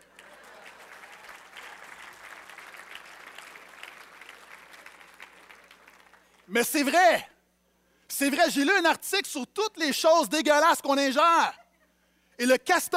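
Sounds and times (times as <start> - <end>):
audience applause: 0.0 - 6.4
speech: 6.5 - 7.3, 8.2 - 11.6, 12.4 - 12.9.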